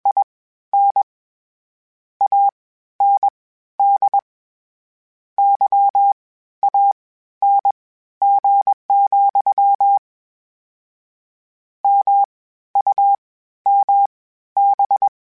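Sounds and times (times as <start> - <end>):
Morse code beeps: 2.2 - 4.2, 5.4 - 10.0, 11.9 - 15.1.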